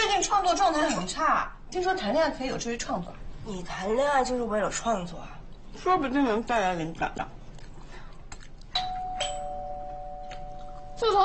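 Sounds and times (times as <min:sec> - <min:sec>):
speech: 0:00.2 - 0:07.4, 0:11.0 - 0:11.2
door intercom bell ringing: 0:08.8 - 0:10.8.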